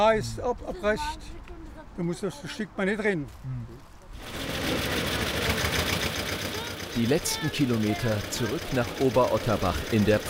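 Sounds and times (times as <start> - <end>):
speech: 0.0 - 1.4, 2.0 - 5.5, 7.0 - 10.2
65-year-old tractor engine running: 4.2 - 10.2.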